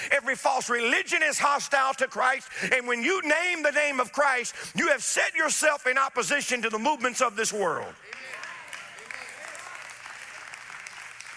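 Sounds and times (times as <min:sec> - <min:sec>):
speech: 0:00.2 - 0:08.3
scattered audience clapping: 0:08.0 - 0:11.3.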